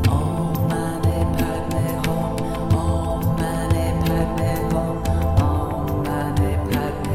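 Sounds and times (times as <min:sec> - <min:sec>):
mantra chanting: 0:00.1 - 0:07.1.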